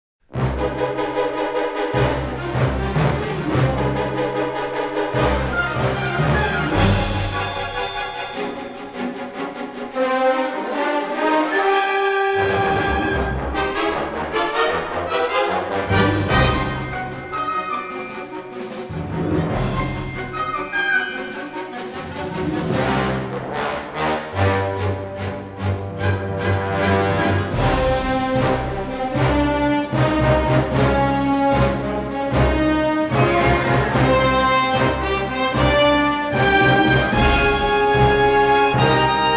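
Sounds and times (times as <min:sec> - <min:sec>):
orchestral action music: 0:00.3 - 0:39.3.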